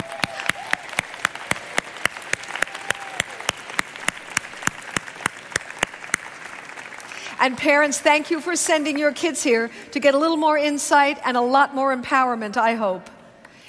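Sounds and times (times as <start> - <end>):
audience applause: 0.0 - 7.6
speech: 7.4 - 13.1.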